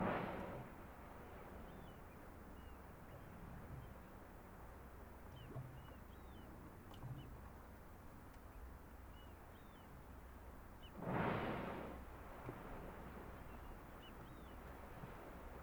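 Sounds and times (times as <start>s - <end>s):
murrelet calls: 0.0s - 15.6s.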